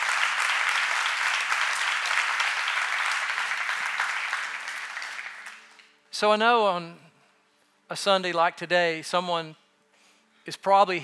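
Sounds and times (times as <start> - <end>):
church audience applauding: 0.0 - 6.0
speech: 6.2 - 7.0, 7.9 - 9.6, 10.4 - 11.0.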